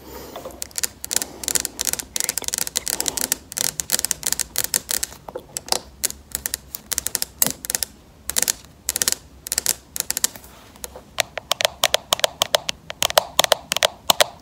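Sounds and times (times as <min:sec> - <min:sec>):
acrylic nails tapping: 0:00.6 - 0:14.4.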